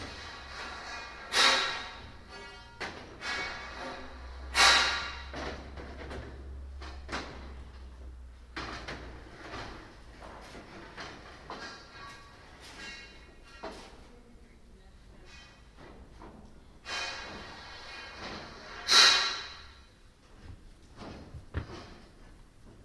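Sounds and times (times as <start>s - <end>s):
scaffolding poles and fittings clanking: 0.0s - 14.1s, 15.1s - 22.8s.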